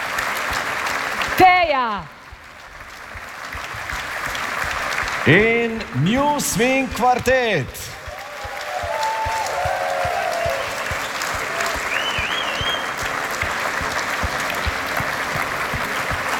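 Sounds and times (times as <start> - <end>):
large audience applause: 0.0 - 16.3
speech: 1.4 - 2.2, 5.2 - 8.0
brief whistles: 8.9 - 13.0.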